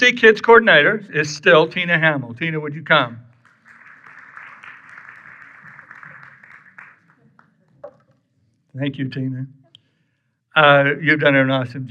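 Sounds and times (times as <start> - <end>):
speech: 0.0 - 3.3, 8.8 - 9.6, 10.6 - 11.8
audience applause: 3.4 - 7.9.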